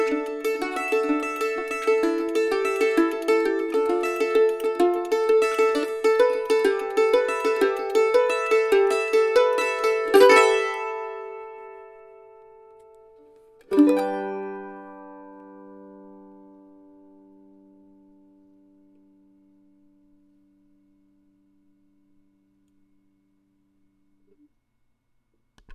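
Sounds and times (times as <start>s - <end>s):
crosspicking on strings: 0.0s - 19.8s.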